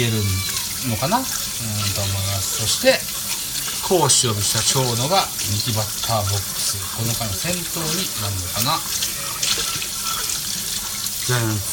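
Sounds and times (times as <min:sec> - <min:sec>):
speech: 0:00.0 - 0:09.2, 0:11.3 - 0:11.7
tap water running into a sink while washing dishes: 0:00.0 - 0:11.7
dishes clinking: 0:08.9 - 0:10.5.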